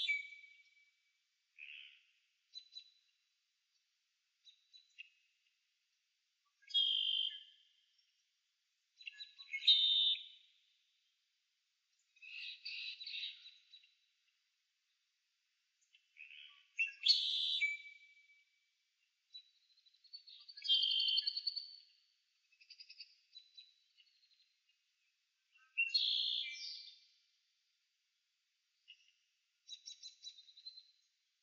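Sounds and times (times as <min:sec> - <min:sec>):
marsh birds: 0:00.0 - 0:00.9, 0:01.6 - 0:03.2, 0:06.5 - 0:08.2, 0:09.0 - 0:10.7, 0:12.0 - 0:14.4, 0:15.8 - 0:18.4, 0:19.3 - 0:27.2, 0:28.8 - 0:31.2.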